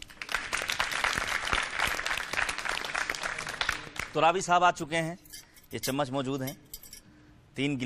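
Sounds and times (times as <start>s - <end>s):
audience applause: 0.0s - 4.1s
speech: 4.2s - 6.6s, 7.6s - 7.8s.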